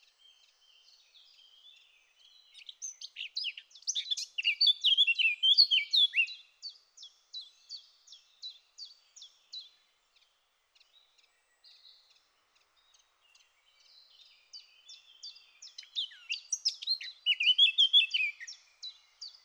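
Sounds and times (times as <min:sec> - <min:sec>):
Eurasian blackcap singing: 0:02.4 - 0:06.5, 0:14.0 - 0:19.4.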